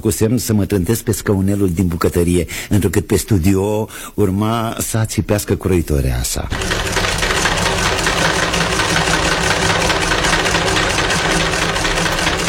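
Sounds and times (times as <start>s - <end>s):
speech: 0.0s - 7.0s
sewing machine clattering: 6.5s - 12.4s.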